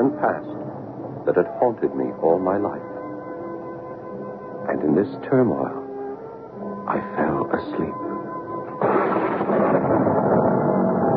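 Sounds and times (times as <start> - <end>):
speech: 0.2 - 0.6, 1.2 - 2.9, 4.7 - 5.8, 6.9 - 8.2
enormous thunderclap: 8.7 - 11.1.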